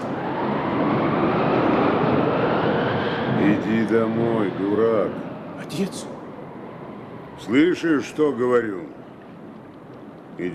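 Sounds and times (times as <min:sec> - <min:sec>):
stormy wind: 0:00.0 - 0:10.5
speech: 0:03.6 - 0:06.2, 0:07.4 - 0:09.0, 0:10.4 - 0:10.5.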